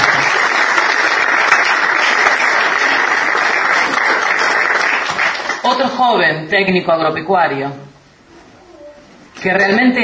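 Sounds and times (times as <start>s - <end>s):
audience applause: 0.0s - 5.7s
speech: 6.0s - 7.8s, 9.4s - 10.0s.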